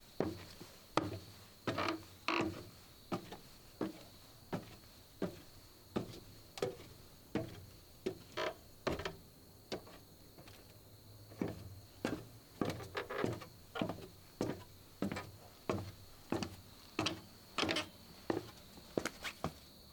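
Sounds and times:
footsteps walking up and down wooden stairs: 0.2s - 19.7s.

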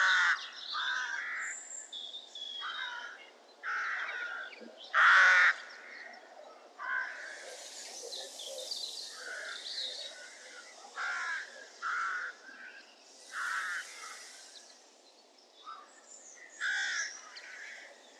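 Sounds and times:
crows giving harsh raspy caws at Market Weighton: 0.0s - 1.5s, 2.6s - 6.0s, 6.8s - 7.4s, 9.2s - 14.5s, 15.6s - 18.0s.

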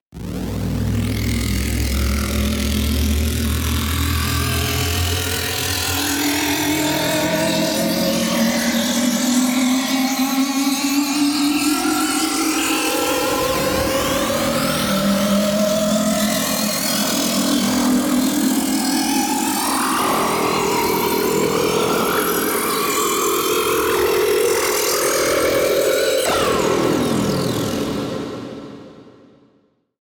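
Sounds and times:
alien riser: 0.2s - 29.2s.

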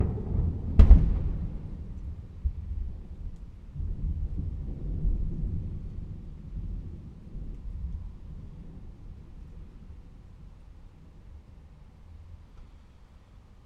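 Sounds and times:
deep thunder clap: 0.0s - 9.4s.

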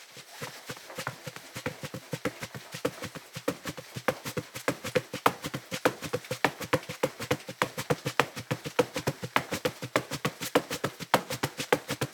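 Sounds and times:
barefoot running on carpet: 0.0s - 12.1s.

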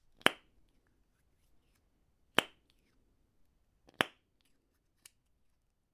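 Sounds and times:
plastic popping: 0.0s - 0.9s, 1.6s - 3.0s, 3.8s - 5.3s.

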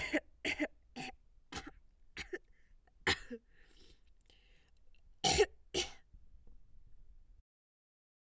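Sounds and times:
woman coughing: 0.0s - 3.5s, 5.2s - 6.0s.

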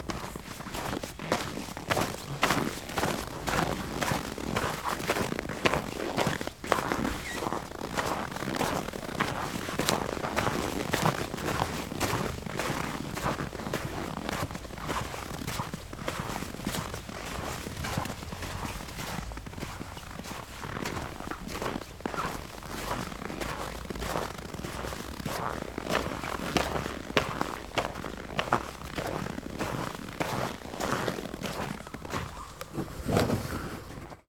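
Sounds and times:
footsteps on frosted snow: 0.0s - 34.2s.

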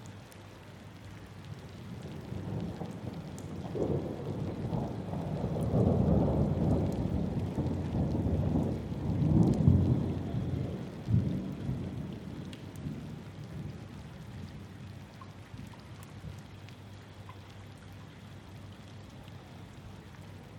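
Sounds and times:
storm: 2.0s - 14.7s.

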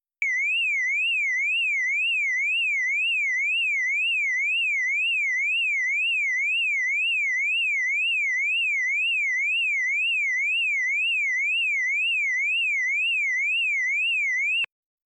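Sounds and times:
car alarm: 0.2s - 14.7s.

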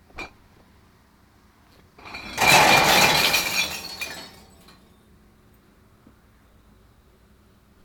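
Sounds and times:
glass dumping: 2.0s - 4.9s.

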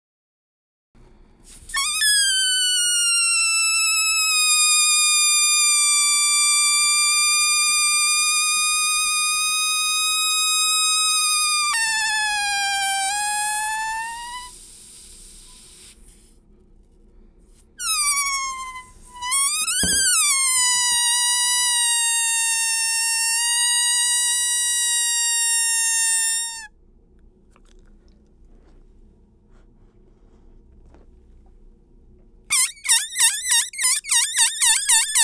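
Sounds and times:
balloon: 1.4s - 16.4s, 17.5s - 26.7s, 32.5s - 35.2s.

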